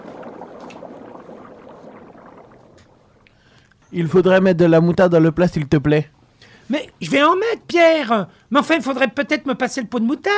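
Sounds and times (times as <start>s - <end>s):
pasta water boiling in a pot: 0.0s - 3.6s
speech: 3.9s - 10.3s.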